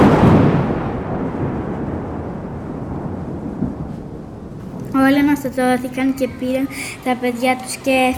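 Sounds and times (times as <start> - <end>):
lightning strike thunderclap with rolling rumble: 0.0 - 5.8
speech: 5.1 - 8.1.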